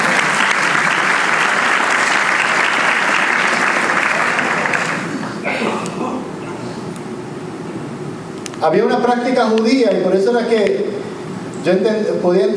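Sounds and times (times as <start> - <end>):
applause: 0.0 - 5.2
speech: 8.7 - 11.0, 11.6 - 12.5.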